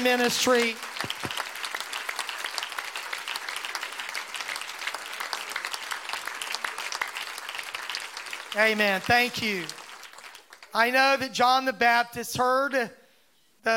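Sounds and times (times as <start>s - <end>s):
speech: 0.0s - 0.9s, 8.6s - 9.8s, 10.8s - 13.0s
audience applauding: 0.0s - 10.8s.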